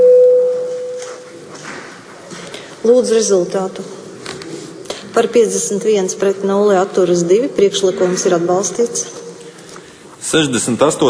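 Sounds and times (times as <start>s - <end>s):
parliament voting bell tone: 0.0s - 1.3s
speech: 2.8s - 4.0s, 5.2s - 9.2s, 10.3s - 11.0s.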